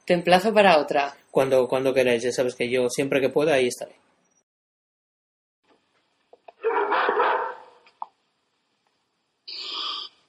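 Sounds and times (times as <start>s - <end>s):
speech: 0.1s - 4.0s
frightened dog barking and howling: 6.6s - 7.8s.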